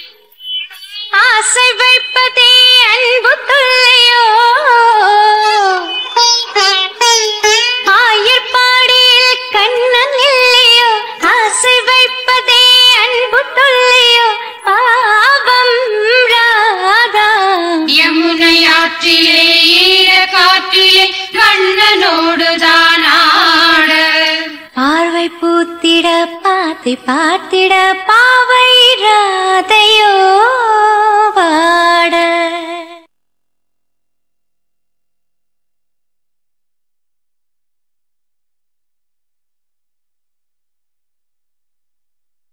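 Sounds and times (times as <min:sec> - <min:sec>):
person singing: 0:01.1 - 0:33.1.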